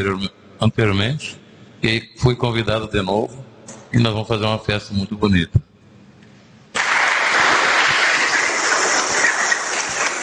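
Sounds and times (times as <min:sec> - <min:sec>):
speech: 0:00.0 - 0:05.7
crowd applause: 0:06.8 - 0:10.2.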